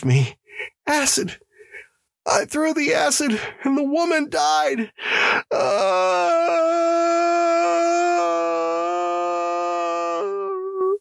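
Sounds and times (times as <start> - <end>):
speech: 0.0 - 1.4, 2.3 - 7.1
long shuddering wail of terror: 5.6 - 10.8.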